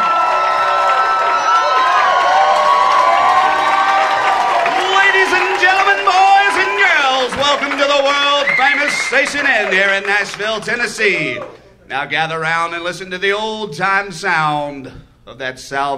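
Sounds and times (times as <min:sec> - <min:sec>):
audience applause and cheering: 0:00.0 - 0:11.6
speech: 0:08.9 - 0:15.9.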